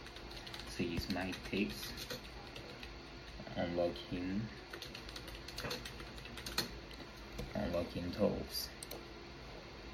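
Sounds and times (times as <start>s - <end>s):
computer keyboard typing into a web browser: 0.0s - 3.5s, 4.6s - 7.5s
speech: 0.8s - 2.3s, 3.5s - 5.0s, 5.6s - 6.0s, 7.6s - 8.8s.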